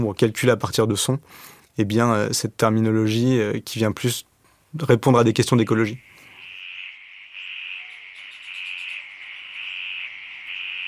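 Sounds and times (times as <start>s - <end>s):
speech: 0.0s - 6.1s
frogs calling around a pond after rain: 5.5s - 10.8s.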